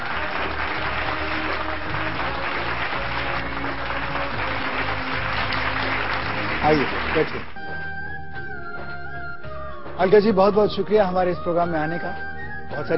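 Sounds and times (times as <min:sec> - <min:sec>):
loud applause: 0:00.0 - 0:07.6
speech: 0:06.7 - 0:07.5, 0:10.0 - 0:12.9.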